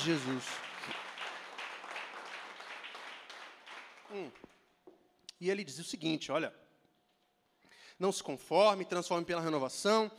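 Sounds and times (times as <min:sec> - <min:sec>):
speech: 0:00.0 - 0:01.0, 0:04.1 - 0:04.5, 0:05.4 - 0:06.6, 0:08.0 - 0:10.1
audience applause: 0:00.0 - 0:04.4.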